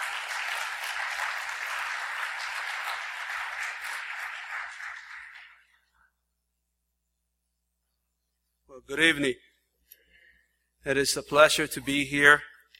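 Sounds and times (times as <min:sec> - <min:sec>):
audience applause welcoming a speaker: 0:00.0 - 0:05.8
speech: 0:08.8 - 0:09.4, 0:10.8 - 0:12.5.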